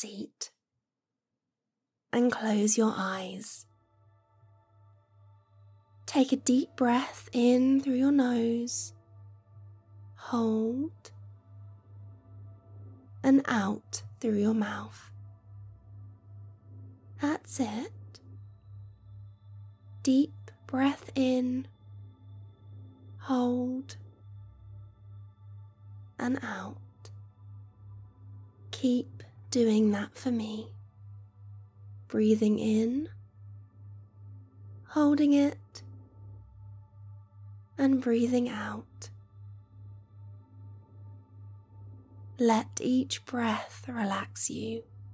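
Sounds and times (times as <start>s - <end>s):
meditation music: 2.1s - 45.1s.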